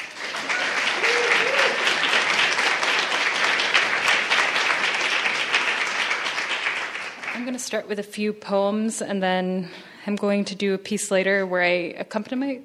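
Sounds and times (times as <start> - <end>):
audience applause at a poetry and music reading: 0.0 - 7.6
speech: 7.5 - 12.6.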